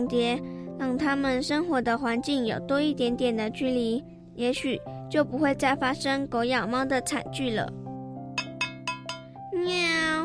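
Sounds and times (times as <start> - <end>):
speech: 0.0 - 7.8
light metallic taps on a tin food can: 8.4 - 9.4.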